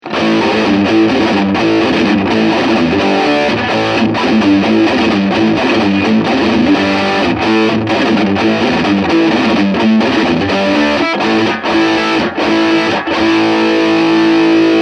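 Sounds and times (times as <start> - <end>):
overdrive distortion: 0.0 - 14.8.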